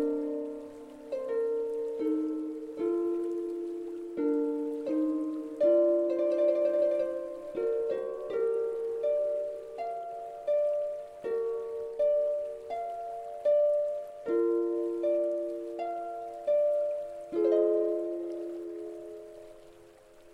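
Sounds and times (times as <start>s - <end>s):
harmonics fourteen to twenty-eight: 0.0s - 20.3s.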